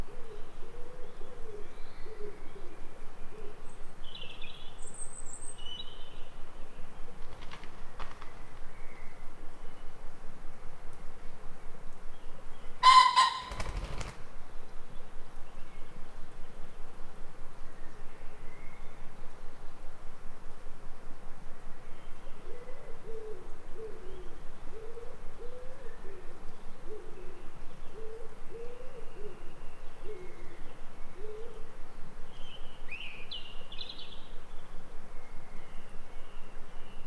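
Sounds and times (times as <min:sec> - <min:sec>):
morning forest ambience: 0:00.0 - 0:37.0.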